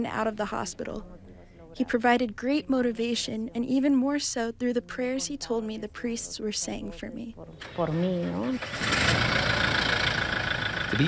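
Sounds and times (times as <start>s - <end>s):
speech: 0.0s - 1.2s, 1.8s - 9.6s
4x4 truck engine starting: 7.6s - 11.0s.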